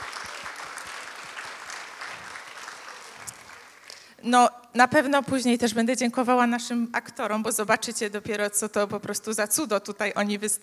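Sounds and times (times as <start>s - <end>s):
audience applause: 0.0s - 4.1s
speech: 4.2s - 10.6s.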